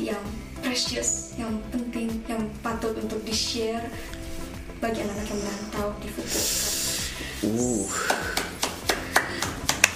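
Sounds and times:
speech: 0:00.1 - 0:04.2, 0:04.8 - 0:06.8, 0:07.4 - 0:08.6
hand clapping: 0:07.8 - 0:09.9.

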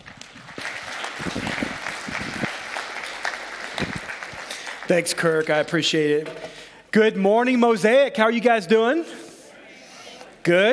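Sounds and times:
audience applause welcoming a speaker: 0:00.0 - 0:05.8
speech: 0:04.9 - 0:09.2, 0:10.4 - 0:10.7.

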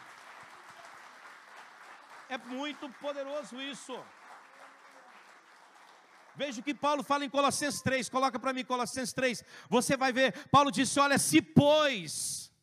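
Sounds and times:
audience applauding: 0:00.0 - 0:07.7
speech: 0:02.3 - 0:04.2, 0:06.4 - 0:12.5.

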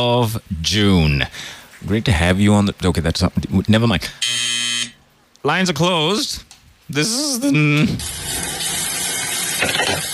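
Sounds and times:
speech: 0:00.0 - 0:04.4, 0:05.4 - 0:08.4
running tap water while washing dishes: 0:08.0 - 0:10.1.

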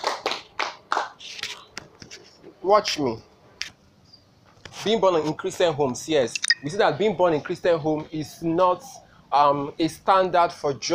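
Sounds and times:
audience clapping hands: 0:00.0 - 0:01.2
speech: 0:02.6 - 0:03.3, 0:04.8 - 0:10.9.

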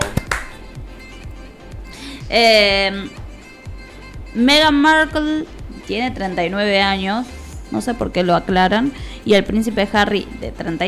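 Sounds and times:
hand claps: 0:00.0 - 0:04.3
faint soft thumps: 0:00.0 - 0:10.7
low murmuring background: 0:00.0 - 0:10.8
speech: 0:02.3 - 0:03.2, 0:04.4 - 0:10.8.

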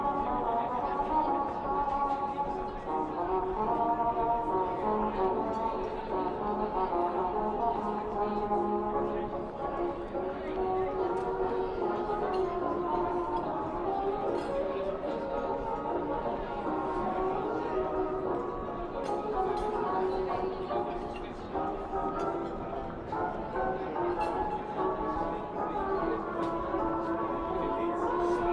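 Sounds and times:
light talking murmur: 0:00.0 - 0:28.5
old-style music in a coffee shop: 0:00.0 - 0:28.5.

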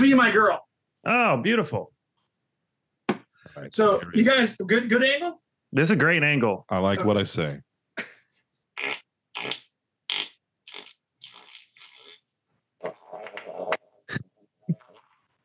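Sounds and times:
speech: 0:00.0 - 0:02.0, 0:03.6 - 0:08.1
farting by a professional farter: 0:08.8 - 0:13.8, 0:14.7 - 0:15.4.

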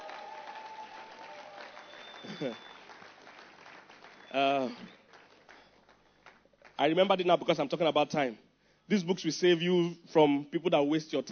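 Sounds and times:
people cheering: 0:00.0 - 0:03.1
church audience clapping: 0:00.0 - 0:07.0
speech: 0:02.3 - 0:02.7, 0:04.3 - 0:05.0, 0:06.8 - 0:11.3.

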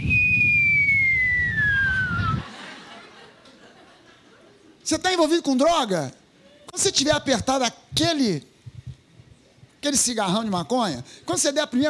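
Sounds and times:
whistled note imitating an angel's flute: 0:00.0 - 0:02.4
laughter: 0:02.3 - 0:04.8
speech: 0:04.9 - 0:06.2, 0:06.8 - 0:08.5, 0:09.8 - 0:11.8.

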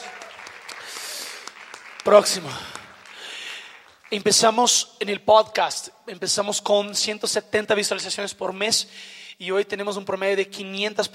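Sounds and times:
applause: 0:00.0 - 0:04.7
speech: 0:02.0 - 0:02.8, 0:04.1 - 0:11.1.

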